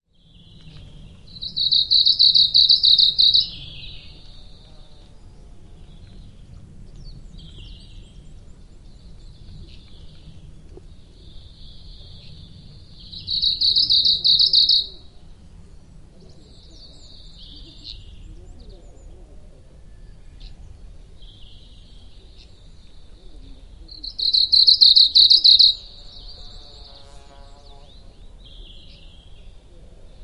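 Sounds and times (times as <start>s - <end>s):
Asian stubtail Urosphena squameiceps high insect-like trill in Japan: 1.4s - 3.6s, 13.3s - 15.0s, 24.2s - 25.9s.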